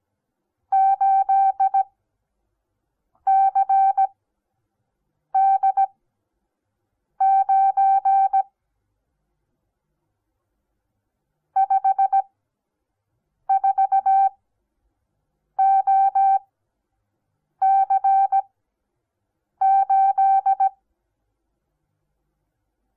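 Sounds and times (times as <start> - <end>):
morse code beeps: 0.8 - 1.8, 3.3 - 4.1, 5.4 - 5.9, 7.2 - 8.4, 11.6 - 12.2, 13.5 - 14.3, 15.6 - 16.4, 17.6 - 18.4, 19.6 - 20.8.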